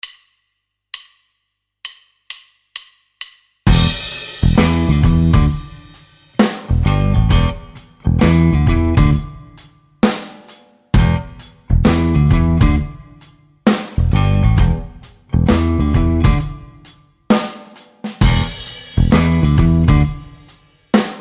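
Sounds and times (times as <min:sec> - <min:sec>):
blues music: 0:03.7 - 0:10.2, 0:11.0 - 0:16.9, 0:18.2 - 0:21.2.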